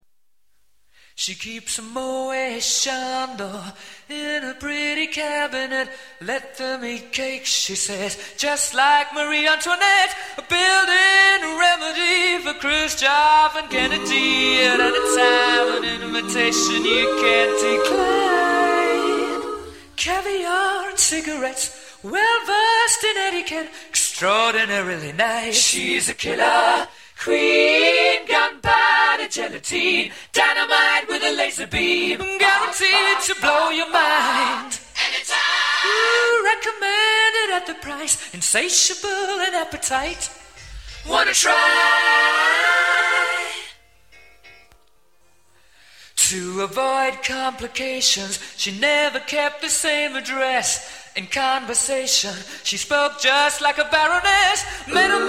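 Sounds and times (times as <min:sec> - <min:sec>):
a cappella singing: 0:01.2 - 0:43.8, 0:46.2 - 0:55.2.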